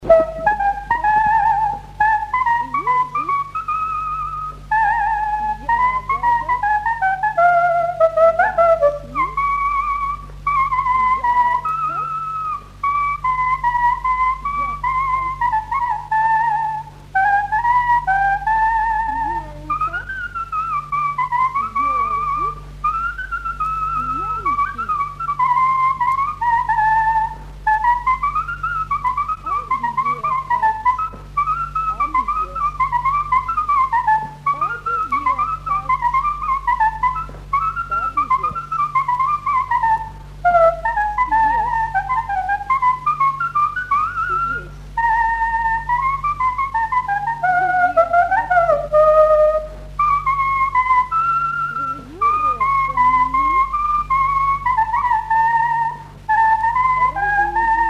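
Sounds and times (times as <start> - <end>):
sarba dance tune played on a leaf: 0.0 - 57.8.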